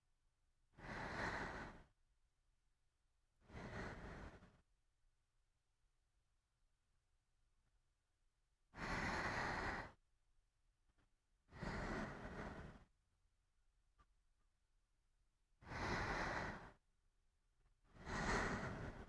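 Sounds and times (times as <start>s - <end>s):
sleeping breath: 0.7s - 2.0s, 3.4s - 4.6s, 8.8s - 10.0s, 11.5s - 13.0s, 15.6s - 16.8s, 17.9s - 19.0s.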